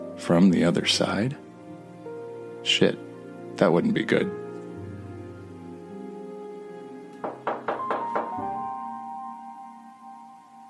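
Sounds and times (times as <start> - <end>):
speech: 0.2 - 1.4, 2.6 - 4.4
knocking on a door: 7.2 - 8.6.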